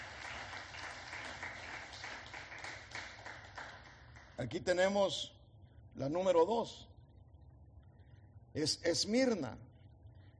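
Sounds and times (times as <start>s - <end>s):
audience applause: 0.0s - 4.2s
speech: 4.4s - 5.4s, 6.0s - 6.9s, 8.5s - 9.7s.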